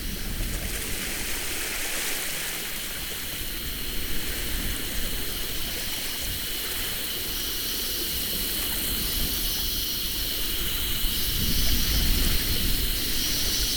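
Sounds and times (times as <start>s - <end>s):
summer seaside breeze: 0.0s - 13.7s.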